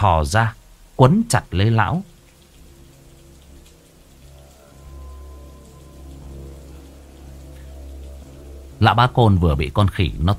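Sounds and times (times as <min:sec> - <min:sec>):
speech: 0:00.0 - 0:02.1, 0:08.8 - 0:10.3
steady rain pattering: 0:00.0 - 0:10.3
low droning rumble: 0:02.1 - 0:09.2.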